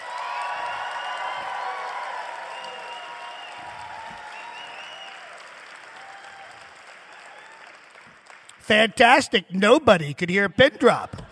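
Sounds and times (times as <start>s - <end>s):
scattered cheers and whoops: 0.0s - 7.8s
large crowd applauding: 0.0s - 9.3s
speech: 8.7s - 11.3s.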